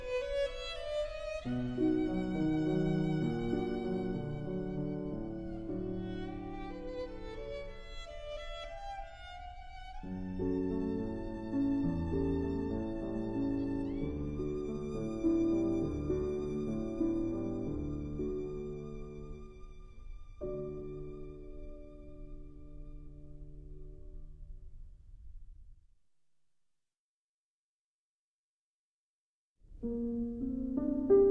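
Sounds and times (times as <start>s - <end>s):
violin: 0.0s - 24.2s
piano: 0.0s - 25.8s, 29.6s - 31.2s.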